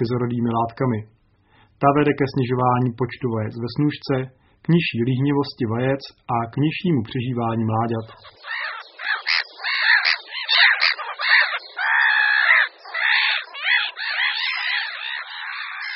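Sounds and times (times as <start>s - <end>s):
speech: 0.0s - 1.2s, 1.8s - 8.6s
Black-headed gull calling: 7.9s - 15.9s.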